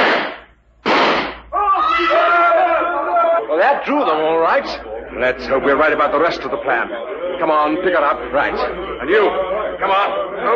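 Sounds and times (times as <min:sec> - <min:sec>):
gunshots: 0:00.0 - 0:01.4
laughter: 0:02.1 - 0:10.5
speech: 0:03.6 - 0:10.5.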